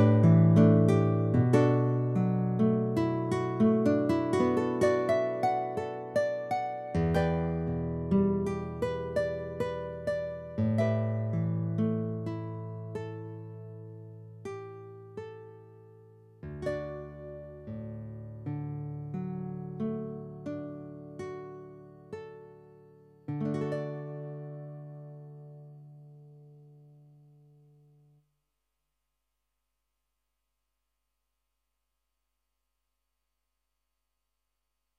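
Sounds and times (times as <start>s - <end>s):
guitar: 0.0s - 28.0s.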